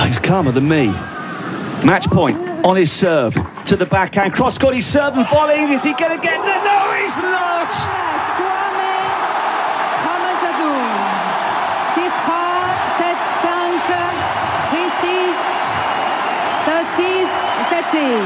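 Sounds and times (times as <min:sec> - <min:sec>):
speech: 0:00.1 - 0:01.1, 0:01.8 - 0:08.2, 0:17.0 - 0:18.2
shouts and whoops: 0:05.5 - 0:18.2
tennis crowd cheering and applauding: 0:05.5 - 0:18.2.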